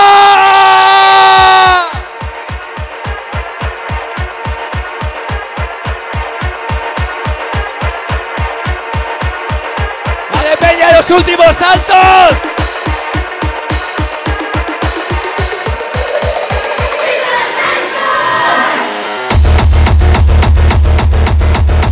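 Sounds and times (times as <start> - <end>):
wedding guests shouting loudly in unison: 0.0 - 2.1, 16.8 - 19.2
thumping dance beat: 1.4 - 17.4, 18.9 - 21.8.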